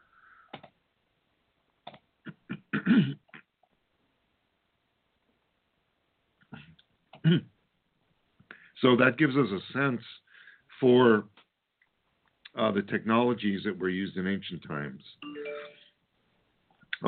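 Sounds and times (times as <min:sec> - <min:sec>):
lone speaker clearing throat: 0:02.3 - 0:03.5, 0:06.6 - 0:07.5
speech: 0:02.8 - 0:03.2, 0:07.3 - 0:07.5, 0:08.8 - 0:11.4, 0:12.6 - 0:15.3.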